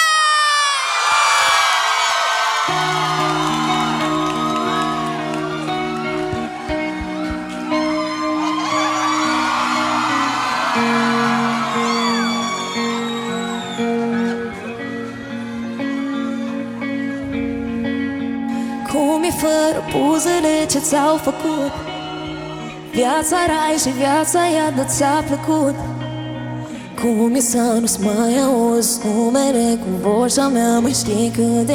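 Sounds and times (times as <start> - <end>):
audience cheering: 0.2 - 23.1
audience applause: 0.9 - 17.2
speech: 20.7 - 21.9, 23.0 - 25.9, 27.0 - 31.7.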